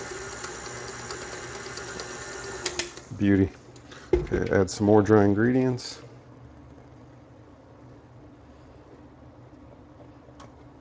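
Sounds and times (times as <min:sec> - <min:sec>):
electric mixer beating dry ingredients: 0:00.0 - 0:03.2
speech: 0:03.2 - 0:03.6, 0:04.3 - 0:06.0.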